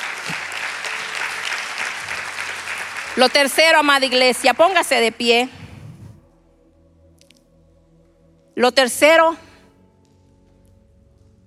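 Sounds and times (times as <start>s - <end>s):
audience applauding: 0.0s - 4.1s
speech: 3.2s - 5.6s, 8.6s - 9.4s.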